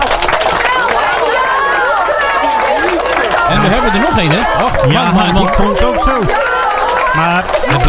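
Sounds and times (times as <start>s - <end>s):
audience clapping: 0.0s - 7.8s
enthusiastic crowd cheering and whooping: 0.0s - 7.8s
laughter: 1.6s - 7.8s
speech: 3.7s - 6.5s, 7.1s - 7.8s.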